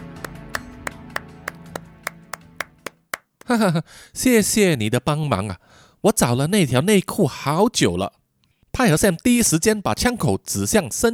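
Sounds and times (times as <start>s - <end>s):
single person clapping hands: 0.2s - 3.5s
speech: 3.5s - 8.2s, 8.8s - 11.1s.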